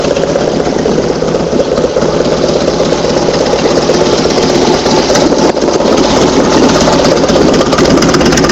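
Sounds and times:
Harley Davidson motorcycle engine: 0.0s - 8.4s.

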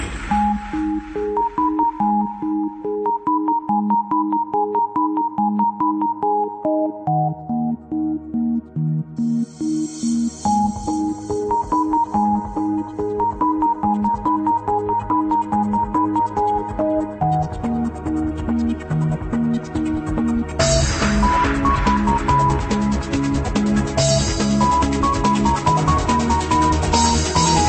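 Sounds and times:
space melody: 0.0s - 27.6s.

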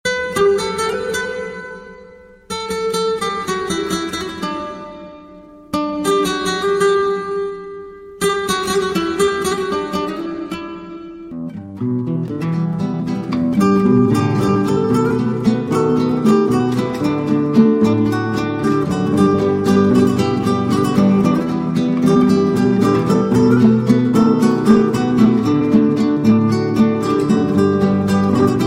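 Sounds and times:
guitar intro: 0.0s - 28.6s.

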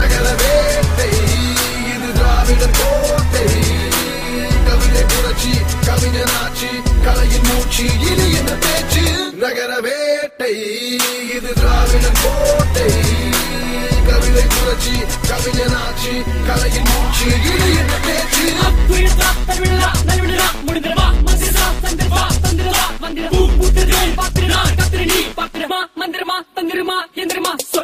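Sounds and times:
person rapping in Tamil: 0.0s - 27.8s.

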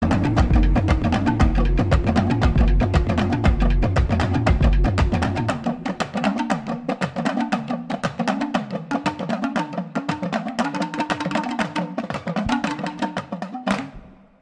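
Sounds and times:
drums ringing: 0.0s - 10.6s, 11.2s - 14.1s.

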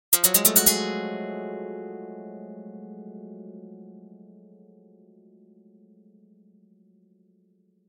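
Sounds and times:
open string plucked: 0.1s - 1.9s.

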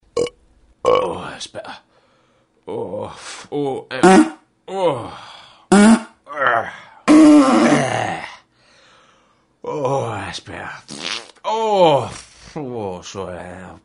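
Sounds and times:
burp: 0.2s - 1.1s, 3.9s - 4.4s, 5.7s - 8.4s
fart: 4.0s - 4.4s, 5.7s - 6.2s, 7.1s - 8.0s, 10.9s - 11.5s.

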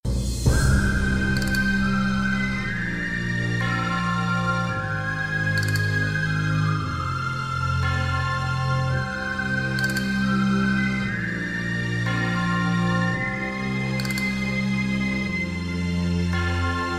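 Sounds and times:
Wild West intro music: 0.0s - 16.9s.

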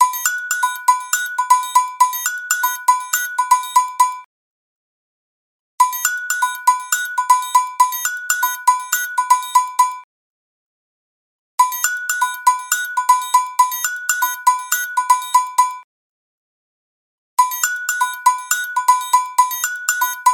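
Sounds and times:
rhythm on a cowbell: 0.0s - 4.2s, 6.0s - 10.0s, 11.8s - 15.8s, 17.4s - 20.3s.

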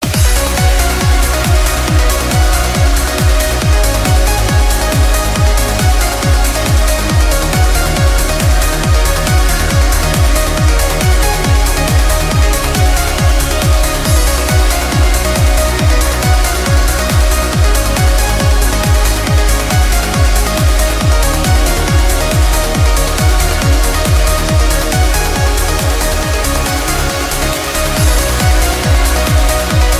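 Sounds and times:
uplifting trance music: 0.0s - 29.9s.

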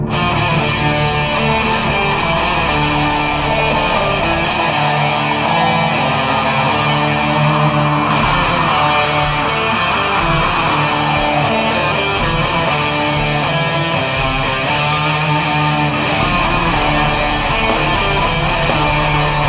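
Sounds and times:
classic heavy metal music: 0.0s - 19.4s.

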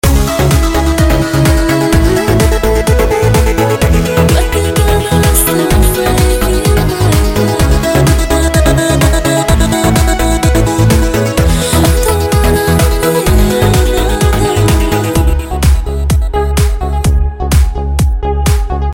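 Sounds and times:
remix music: 0.0s - 18.9s.

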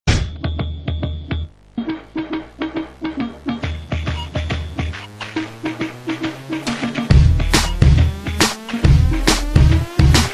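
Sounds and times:
tech melody: 0.8s - 10.3s.

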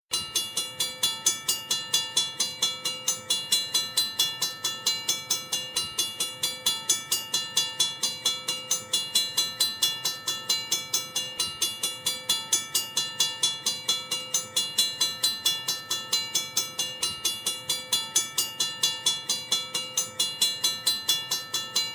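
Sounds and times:
railroad bells ringing: 0.1s - 21.9s.

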